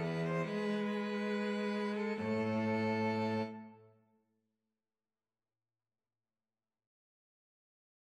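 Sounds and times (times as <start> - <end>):
violin and cello duet: 0.0 - 3.8.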